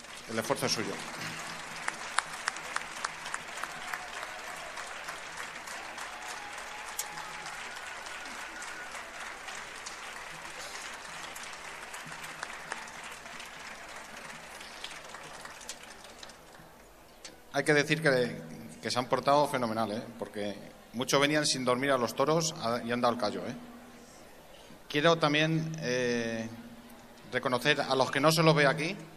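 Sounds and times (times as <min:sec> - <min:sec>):
audience applause: 0:00.0 - 0:17.0
speech: 0:00.3 - 0:01.5, 0:17.6 - 0:23.7, 0:24.9 - 0:26.6, 0:27.3 - 0:29.1.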